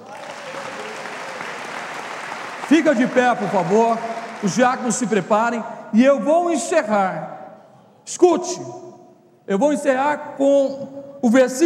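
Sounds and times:
audience applause: 0.0 - 5.0
speech: 2.7 - 7.4, 8.1 - 8.9, 9.5 - 11.6.

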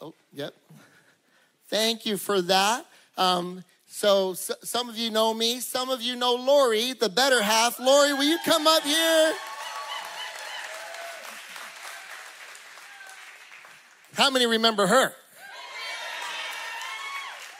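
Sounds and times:
speech: 0.1 - 0.7, 1.7 - 9.5, 14.2 - 15.2
audience cheering: 8.0 - 13.7, 15.4 - 17.5
audience applause: 8.5 - 14.2, 15.8 - 17.5.

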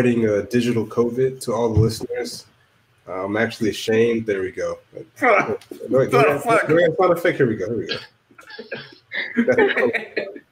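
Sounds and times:
speech: 0.0 - 2.5, 3.1 - 10.4
cough: 7.9 - 8.1
laughter: 8.4 - 10.4.

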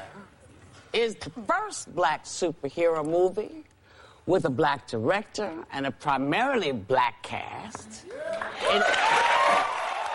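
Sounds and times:
speech: 1.0 - 9.8
audience applause in played clip: 8.2 - 10.1.

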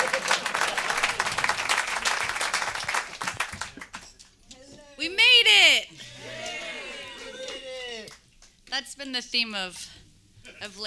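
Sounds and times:
audience clapping: 0.0 - 4.3, 6.2 - 8.6
speech: 9.0 - 10.0, 10.6 - 10.8.

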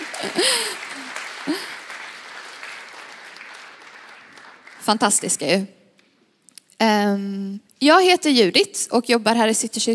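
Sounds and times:
audience applause: 0.0 - 5.5
speech: 0.2 - 0.8, 4.9 - 5.8, 6.8 - 9.9.

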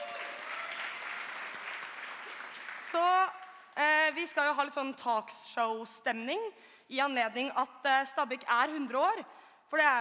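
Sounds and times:
audience applause: 0.0 - 3.0
speech: 4.1 - 9.9.

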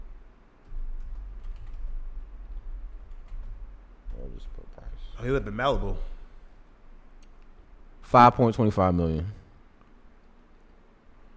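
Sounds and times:
computer keyboard typing a web search: 0.6 - 4.2
speech: 4.4 - 6.1, 8.1 - 9.4.

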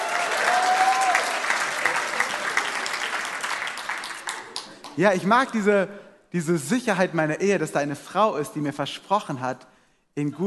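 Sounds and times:
loud dense crowd applause: 0.0 - 5.0
speech: 5.0 - 10.4.

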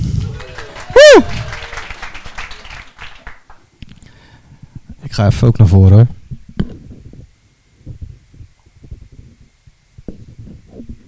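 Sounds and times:
audience applause for an assistant: 0.1 - 3.6
speech: 5.2 - 6.2.

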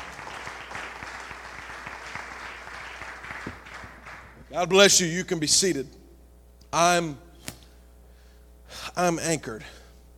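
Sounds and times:
crowd clapping hands in praise: 0.0 - 4.5
speech: 4.5 - 6.0, 6.8 - 7.2, 9.0 - 9.8.

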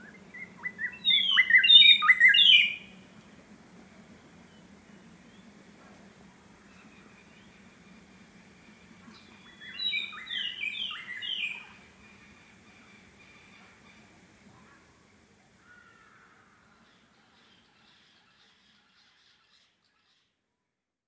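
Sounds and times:
White-browed robin-chat whistled song: 0.0 - 2.9, 9.1 - 12.2.

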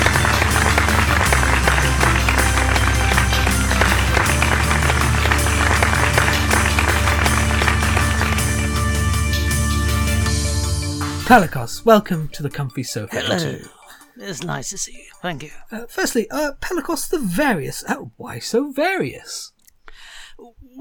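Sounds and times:
canned applause: 0.0 - 11.4
speech: 11.3 - 19.5, 20.4 - 20.8.

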